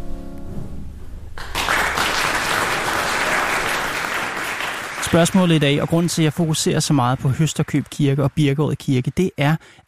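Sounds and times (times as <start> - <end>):
audience clapping at end of church service: 1.4 - 9.2
speech: 5.1 - 9.8.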